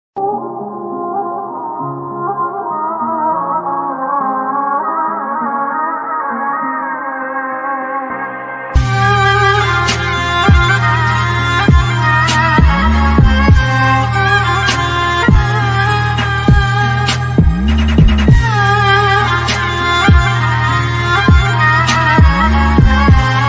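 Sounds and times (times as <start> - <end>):
Islamic background music ringtone: 0.2 - 23.4.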